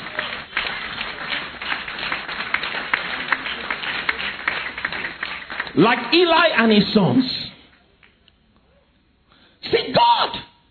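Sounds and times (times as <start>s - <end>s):
audience clapping and applauding: 0.0s - 6.8s
speech: 5.8s - 7.4s.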